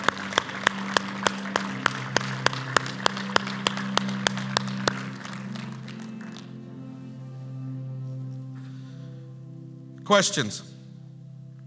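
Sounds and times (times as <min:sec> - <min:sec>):
audience clapping in unison: 0:00.0 - 0:06.8
low organ-like drone: 0:00.0 - 0:11.6
speech: 0:10.1 - 0:10.8.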